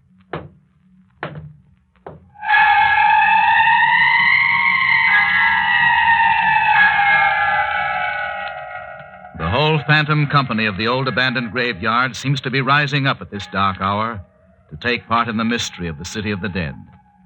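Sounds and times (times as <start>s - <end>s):
footsteps on wooden porch boards: 0.2s - 0.6s, 1.2s - 2.3s
loud sustained eerie wavering tone: 2.4s - 17.2s
speech: 9.9s - 16.9s.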